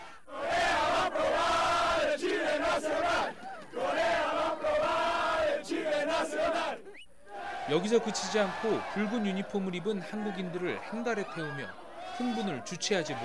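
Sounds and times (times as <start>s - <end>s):
Mexican football fans jumping and chanting cheers: 0.0s - 13.2s
laughter: 2.6s - 4.6s, 7.7s - 13.2s
speech: 7.7s - 13.2s.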